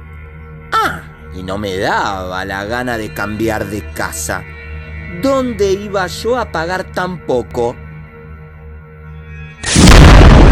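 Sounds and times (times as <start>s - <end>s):
speech: 1.3s - 4.5s, 5.1s - 7.8s
shotgun blast: 9.6s - 10.5s.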